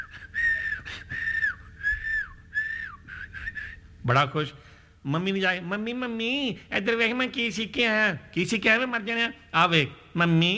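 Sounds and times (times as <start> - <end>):
lip whistling by a boy who has just learned how: 0.0 - 3.8
speech: 4.0 - 10.5.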